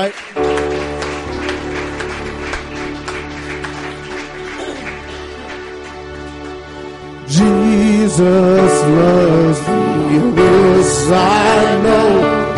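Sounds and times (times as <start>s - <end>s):
speech: 0.0s - 0.5s, 8.1s - 12.4s
audience cheering and applauding: 0.0s - 7.6s.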